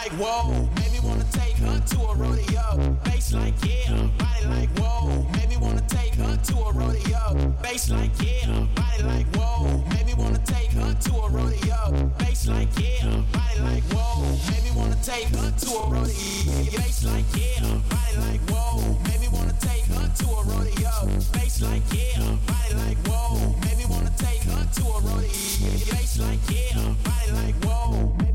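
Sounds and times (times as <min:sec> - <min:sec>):
bass: 0:00.2 - 0:28.3.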